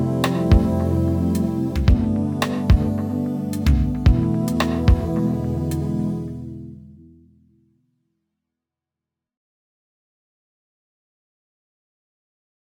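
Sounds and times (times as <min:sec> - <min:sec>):
ambient pad: 0:00.0 - 0:07.6.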